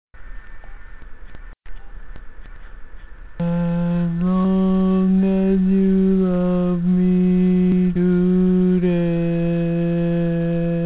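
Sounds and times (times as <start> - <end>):
barbershop baritone singing: 3.4 - 10.8.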